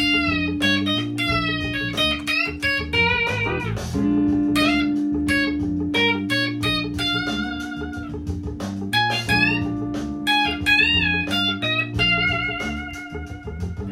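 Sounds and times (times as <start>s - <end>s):
minor pentatonic guitar solo: 0.0s - 13.8s.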